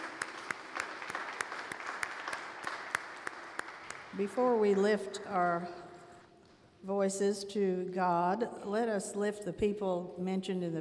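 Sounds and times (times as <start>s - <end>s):
audience applauding singers: 0.0s - 4.2s
speech: 4.2s - 5.8s, 6.8s - 10.7s.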